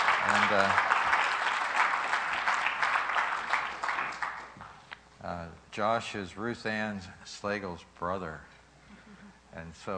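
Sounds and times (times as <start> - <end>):
church congregation clapping to welcome a missionary family: 0.0 - 4.8
speech: 0.3 - 0.9, 5.8 - 8.5, 9.6 - 9.9.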